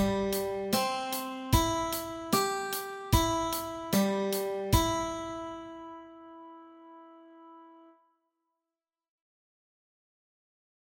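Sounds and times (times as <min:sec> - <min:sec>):
guitar exercise: 0:00.0 - 0:07.8.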